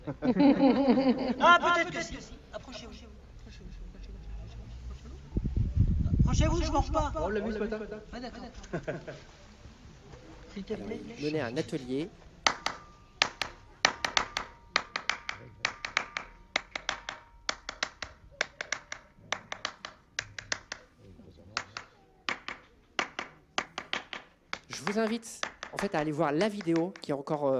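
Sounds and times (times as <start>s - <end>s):
laughter: 0.0s - 2.1s, 3.4s - 5.3s, 8.2s - 9.5s
speech: 0.1s - 3.1s, 6.3s - 9.4s, 10.6s - 12.2s, 24.9s - 27.5s
hand claps resonating on stone: 12.4s - 20.9s, 21.6s - 27.1s.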